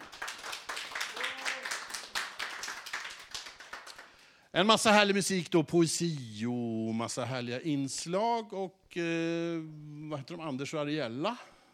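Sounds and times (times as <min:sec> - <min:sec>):
audience clapping: 0:00.0 - 0:04.4
speech: 0:04.5 - 0:11.5.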